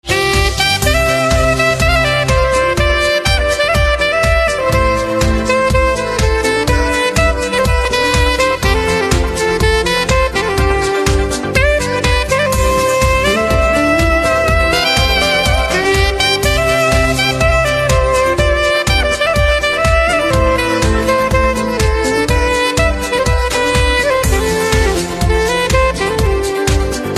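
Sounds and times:
saxophone instrumental ringtone: 0.0s - 27.1s.

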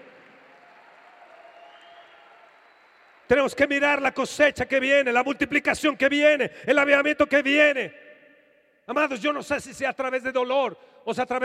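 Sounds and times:
audience applauding: 0.0s - 4.0s
speech: 3.3s - 8.0s, 8.9s - 11.4s.

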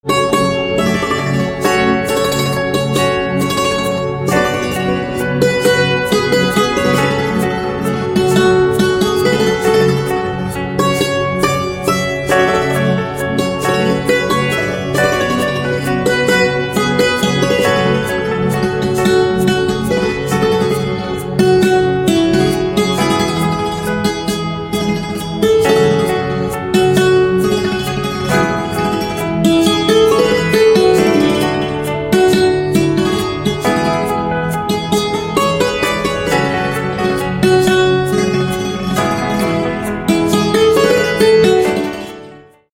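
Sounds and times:
santoor instrumental ringtone: 0.0s - 42.7s.

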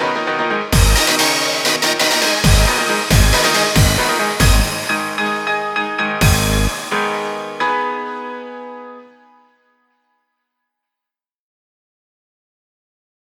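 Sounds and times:
nu rave electronic music: 0.0s - 7.6s.

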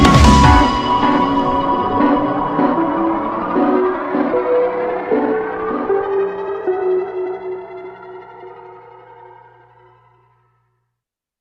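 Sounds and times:
dubstep role play game music: 0.0s - 8.5s.

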